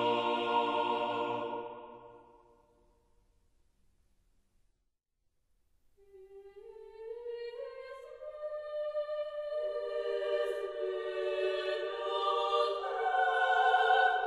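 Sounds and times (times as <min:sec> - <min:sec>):
choral concerto with choir and orchestra: 0:00.0 - 0:02.6, 0:06.4 - 0:14.2.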